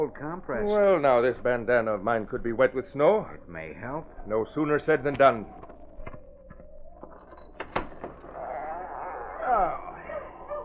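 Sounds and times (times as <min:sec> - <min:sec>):
speech: 0:00.0 - 0:05.7
dogs barking in the distance: 0:08.8 - 0:10.6.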